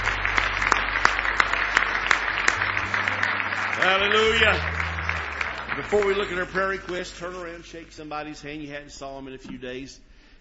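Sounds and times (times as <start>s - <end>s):
audience clapping: 0.0s - 8.0s
speech: 3.8s - 4.7s, 5.8s - 10.1s.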